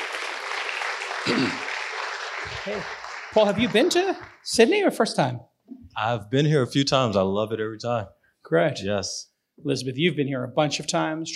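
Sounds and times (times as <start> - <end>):
audience applause: 0.0 - 4.5
speech: 1.3 - 1.7, 2.6 - 11.3.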